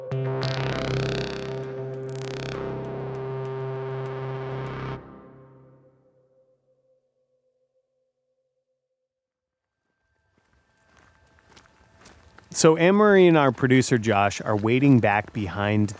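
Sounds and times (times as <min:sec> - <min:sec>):
loud sustained tone: 0:00.0 - 0:07.9
footsteps crunching and rustling through woods: 0:09.7 - 0:15.9
speech: 0:12.6 - 0:15.9.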